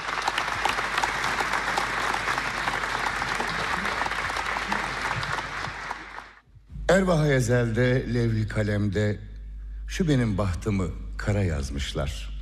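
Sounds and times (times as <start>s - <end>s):
audience applause welcoming a folk singer: 0.0s - 6.4s
speech: 7.0s - 9.3s, 9.9s - 12.3s.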